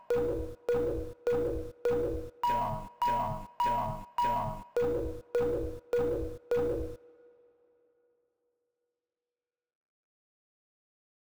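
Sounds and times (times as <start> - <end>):
beeps: 0.1 - 7.0.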